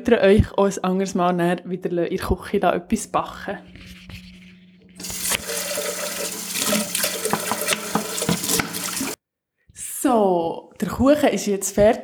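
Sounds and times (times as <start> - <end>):
speech: 0.0 - 4.2, 10.1 - 12.0
water running into a sink: 5.0 - 9.2.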